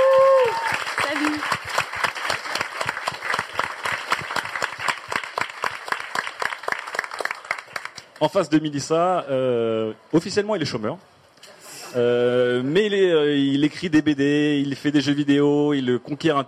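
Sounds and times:
audience applause: 0.0s - 8.2s
speech: 8.2s - 11.1s, 11.9s - 16.4s.

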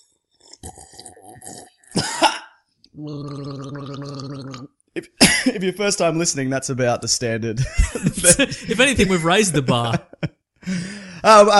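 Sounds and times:
person drinking water, gulping: 0.3s - 4.8s
speech: 3.0s - 3.5s, 5.0s - 10.1s, 10.7s - 11.5s
laughter: 7.6s - 10.3s.

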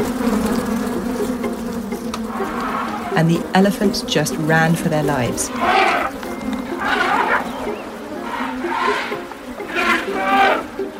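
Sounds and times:
disturbed bees swarming from a hive: 0.0s - 10.9s
speech: 3.2s - 5.9s.

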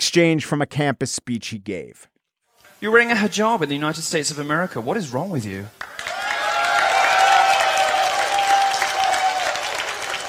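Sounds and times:
speech: 0.1s - 2.1s, 2.8s - 6.1s
crowd cheering and applauding: 5.8s - 10.2s.

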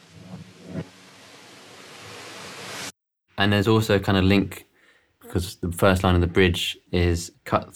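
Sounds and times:
reversed panned steam hiss: 0.0s - 2.9s
speech: 3.4s - 4.7s, 5.3s - 7.7s.

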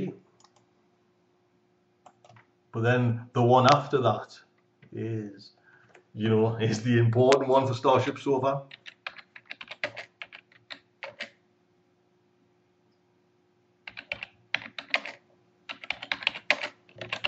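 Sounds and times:
typing on a computer keyboard: 0.4s - 0.6s, 2.0s - 2.5s, 8.6s - 11.4s, 13.9s - 17.2s
speech: 2.8s - 5.6s, 6.2s - 8.8s.

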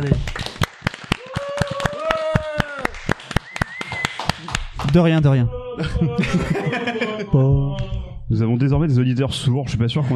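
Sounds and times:
speech: 0.0s - 0.4s, 4.9s - 10.1s
small round of applause: 0.0s - 5.0s
laughter: 5.6s - 7.6s.

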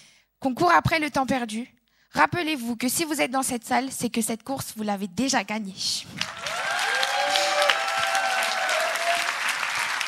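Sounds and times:
speech: 0.4s - 6.4s
audience applause: 6.2s - 10.0s
faint whistles and cheers: 6.2s - 10.0s.

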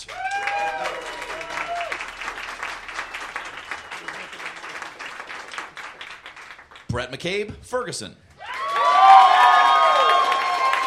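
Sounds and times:
audience applause: 0.0s - 6.9s, 8.4s - 10.8s
person whooping: 0.1s - 2.0s, 8.4s - 10.8s
speech: 6.9s - 8.2s.

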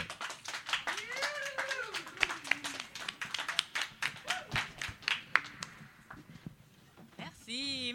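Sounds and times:
audience clapping: 0.0s - 6.2s
whoops and cheers: 0.9s - 2.8s, 4.2s - 4.8s.

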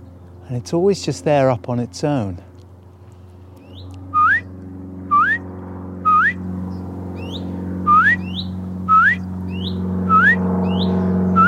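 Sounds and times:
speech: 0.5s - 2.5s
bird calling from a tree: 3.6s - 4.5s, 5.1s - 5.4s, 6.0s - 6.4s, 7.2s - 11.4s.

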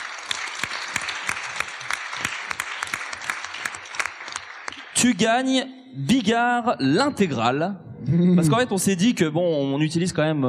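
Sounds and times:
applause: 0.0s - 5.5s
speech: 5.0s - 10.4s.

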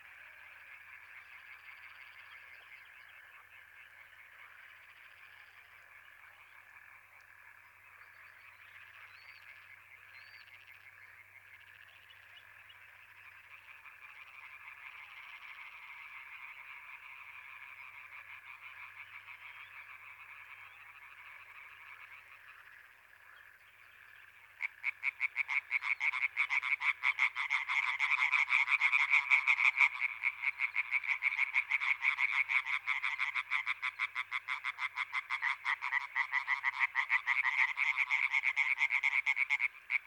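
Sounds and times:
European tree frog chorus: 0.0s - 40.0s
single frog croaking loudly: 24.6s - 40.0s.

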